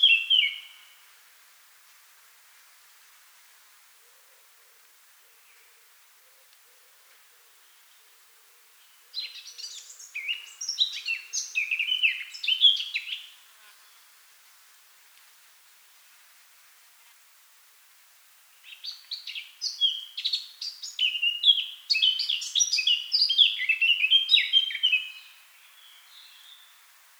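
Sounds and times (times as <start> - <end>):
Eurasian blackcap song: 9.2 - 14.0, 18.6 - 26.8.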